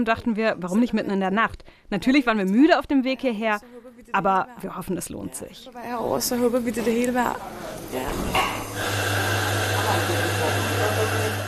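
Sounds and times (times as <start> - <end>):
speech: 0.0 - 9.2
espresso machine running: 7.6 - 11.4.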